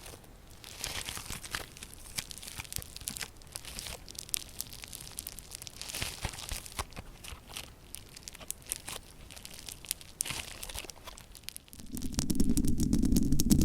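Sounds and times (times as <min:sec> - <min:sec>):
scratching and crinkling with nails and items: 0:00.0 - 0:13.6
lower rubbing: 0:11.8 - 0:13.6.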